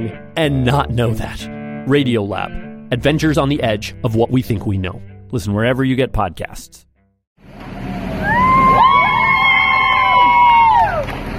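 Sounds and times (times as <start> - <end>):
speech: 0.1 - 6.9
onlookers cheering in Charlottesville Virginia as Confederate statues are shrouded: 7.7 - 11.3.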